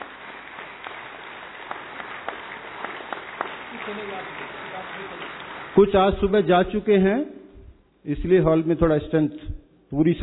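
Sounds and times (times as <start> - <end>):
standing audience in a hall clapping for a navy contingent: 0.0 - 6.5
speech: 3.9 - 7.4, 8.0 - 10.2.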